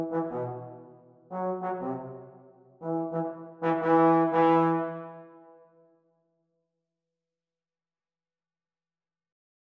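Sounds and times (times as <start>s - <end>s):
trombone playalong music: 0.0s - 5.4s.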